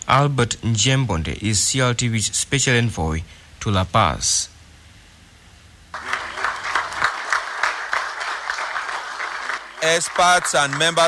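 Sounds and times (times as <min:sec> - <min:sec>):
speech: 0:00.1 - 0:04.5, 0:09.8 - 0:11.0
delegates applauding: 0:05.9 - 0:11.0.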